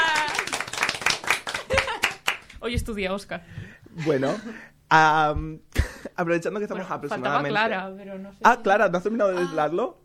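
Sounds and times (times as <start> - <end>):
applause for performers after a song: 0.0 - 2.6
speech: 2.6 - 10.0.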